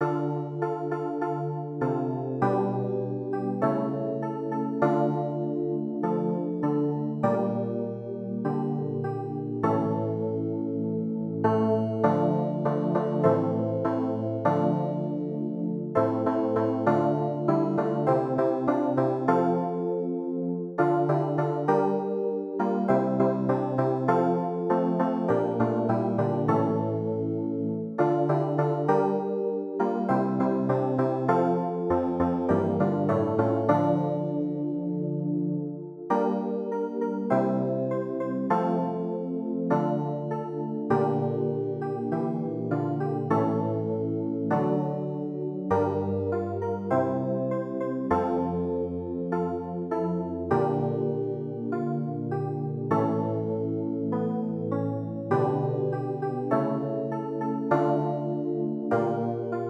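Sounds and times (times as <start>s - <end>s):
keyboard: 0.0s - 59.6s.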